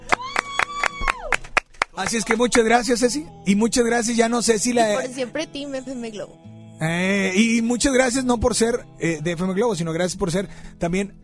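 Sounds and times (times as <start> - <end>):
applause: 0.0 - 2.8
speech: 2.0 - 11.2.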